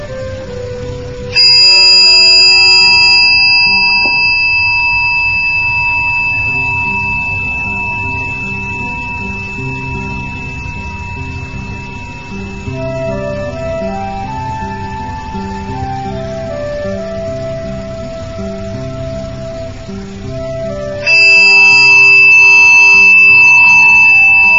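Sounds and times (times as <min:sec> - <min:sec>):
meditation bell ringing: 0:01.3 - 0:14.4, 0:21.0 - 0:24.5.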